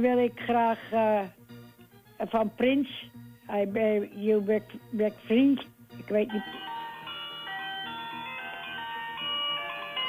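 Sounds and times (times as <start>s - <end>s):
speech: 0.0s - 1.4s, 2.2s - 6.7s
phone ringing with melodic electronic ringtone: 6.2s - 10.0s.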